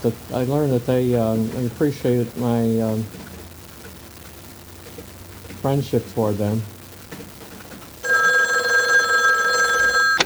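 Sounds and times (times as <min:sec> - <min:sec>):
speech: 0:00.0 - 0:03.3, 0:05.6 - 0:06.8
telephone ringing: 0:08.0 - 0:10.2.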